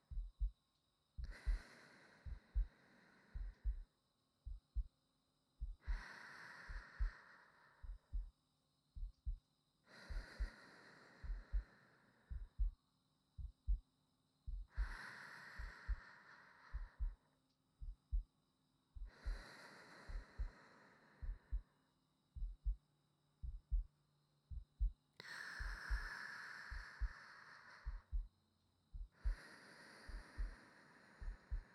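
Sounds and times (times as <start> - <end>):
new wife's heartbeat: 0.0 - 0.6, 1.2 - 2.7, 3.3 - 4.9, 5.6 - 6.1, 6.7 - 7.2, 7.8 - 8.4, 9.0 - 9.4, 10.0 - 10.6, 11.2 - 11.7, 12.3 - 12.8, 13.4 - 13.9, 14.5 - 16.1, 16.7 - 17.2, 17.8 - 18.3, 19.0 - 19.5, 20.1 - 20.6, 21.2 - 21.7, 22.4 - 22.8, 23.4 - 23.9, 24.5 - 25.0, 25.6 - 27.2, 27.8 - 28.3, 28.9 - 29.4, 30.0 - 30.6, 31.2 - 31.7
sleeping breathing: 1.2 - 3.9, 5.8 - 8.3, 9.9 - 12.7, 14.6 - 17.3, 19.0 - 21.8, 25.2 - 28.2, 29.1 - 31.7.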